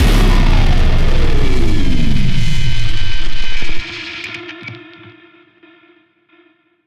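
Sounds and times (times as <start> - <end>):
boss death music: 0.0 - 5.0.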